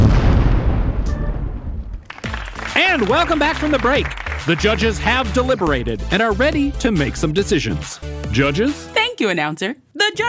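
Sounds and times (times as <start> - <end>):
comedic explosion sound effect for exploding pants: 0.0 - 2.1
speech: 2.9 - 10.2.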